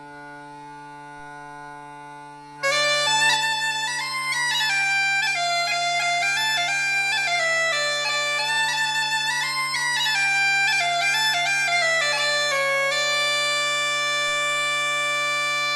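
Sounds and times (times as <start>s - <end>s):
goatskin bagpipe playing: 0.0s - 15.7s.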